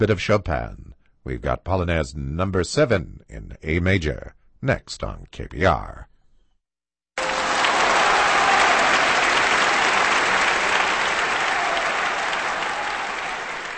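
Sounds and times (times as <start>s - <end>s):
speech: 0.0s - 6.1s
audience applause after piano performance: 7.2s - 13.7s.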